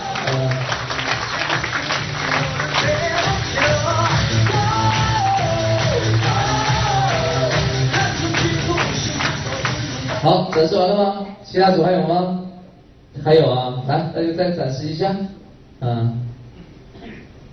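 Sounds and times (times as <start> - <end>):
warm audience applause: 0.0 - 10.3
speech: 10.2 - 12.4, 13.2 - 16.2.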